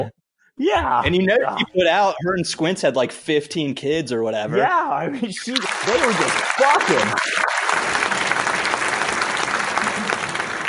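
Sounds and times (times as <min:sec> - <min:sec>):
speech: 0:00.0 - 0:08.1
audience applause: 0:05.5 - 0:10.6.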